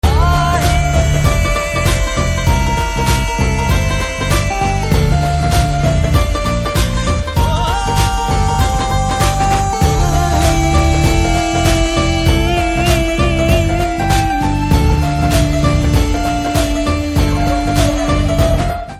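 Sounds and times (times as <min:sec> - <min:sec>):
Telugu background music ringtone: 0:00.0 - 0:18.9.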